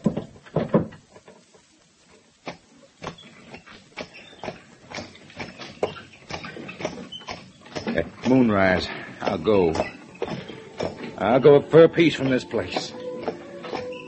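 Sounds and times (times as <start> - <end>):
wagon wooden thuds: 0.0 - 1.6, 2.4 - 11.3, 12.2 - 14.0
clopping hoofbeats: 2.5 - 14.0
horse-drawn wagon pulling away: 3.5 - 14.0
speech: 8.3 - 10.0, 11.2 - 13.0.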